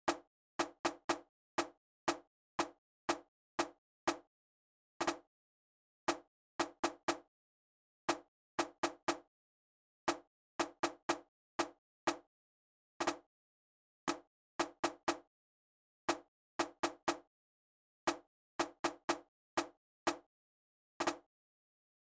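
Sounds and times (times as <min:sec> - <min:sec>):
snare drum: 0:00.1 - 0:04.2, 0:05.0 - 0:05.2, 0:06.1 - 0:07.2, 0:08.1 - 0:09.2, 0:10.1 - 0:12.2, 0:13.0 - 0:13.2, 0:14.1 - 0:15.2, 0:16.1 - 0:17.2, 0:18.1 - 0:20.2, 0:21.0 - 0:21.3.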